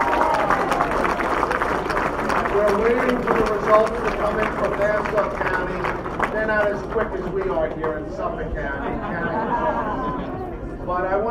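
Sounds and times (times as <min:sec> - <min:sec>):
crowd cheers: 0:00.0 - 0:03.6
crowd clapping: 0:00.0 - 0:08.5
crowd murmuring: 0:00.0 - 0:11.2
speech: 0:02.6 - 0:10.3, 0:10.9 - 0:11.2
laughter: 0:08.6 - 0:11.0.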